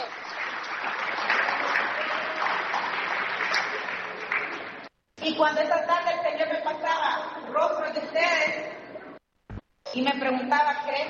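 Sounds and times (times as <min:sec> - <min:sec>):
audience clapping hands: 0:00.0 - 0:04.9
speech: 0:05.2 - 0:08.9, 0:10.0 - 0:11.0.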